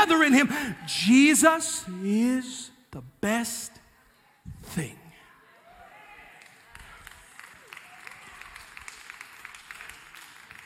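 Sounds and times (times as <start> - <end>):
speech: 0.0 - 3.8, 4.6 - 5.0
audience applause: 6.3 - 10.6.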